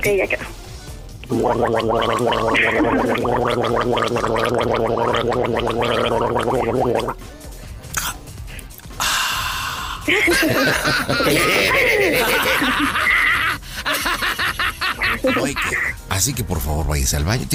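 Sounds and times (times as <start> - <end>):
speech: 0.0 - 0.6, 1.3 - 7.4, 10.1 - 13.2, 15.2 - 17.5
person gargling: 1.2 - 7.2, 7.9 - 8.2
person spitting out liquid: 1.2 - 7.2, 7.8 - 9.2
laughter: 10.1 - 16.0.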